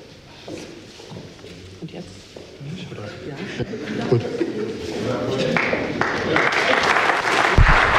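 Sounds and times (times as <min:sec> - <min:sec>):
speech: 0:03.2 - 0:04.4
laughter: 0:03.4 - 0:05.7
applause for newly sworn council members: 0:05.5 - 0:07.9.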